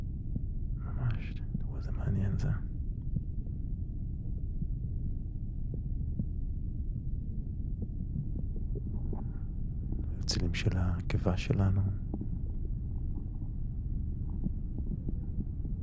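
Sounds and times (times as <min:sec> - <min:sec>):
blood pressure pulse sounds, heartbeat: 0:00.0 - 0:15.8
speech: 0:01.3 - 0:02.7, 0:10.5 - 0:12.2.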